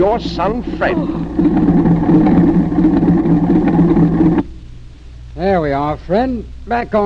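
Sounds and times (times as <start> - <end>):
speech: 0.0 - 3.3, 5.4 - 7.0
small plane engine droning after landing: 0.0 - 4.6.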